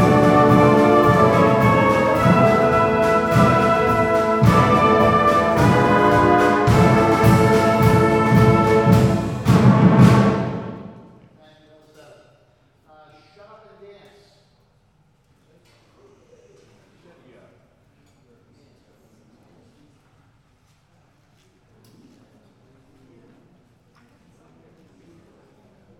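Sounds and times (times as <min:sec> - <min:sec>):
brass music: 0:00.0 - 0:11.1.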